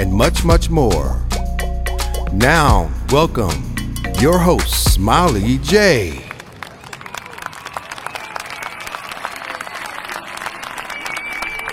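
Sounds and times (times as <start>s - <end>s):
speech: 0.0s - 1.2s, 2.3s - 6.2s
crowd applause: 5.7s - 11.7s
cheers and whoops: 6.9s - 11.7s.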